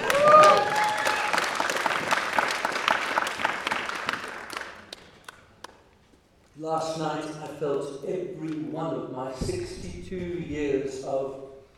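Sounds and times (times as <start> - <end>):
crowd cheering and clapping: 0.0 - 5.8
speech: 7.6 - 11.4.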